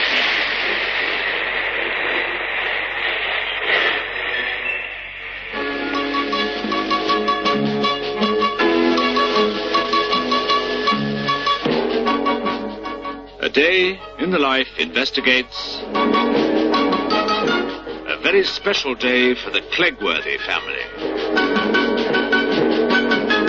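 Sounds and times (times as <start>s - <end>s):
train arriving: 0.0s - 23.4s
bright musical passage with sustained notes: 5.5s - 19.1s, 20.0s - 23.4s
speech: 13.6s - 15.8s, 18.3s - 21.0s.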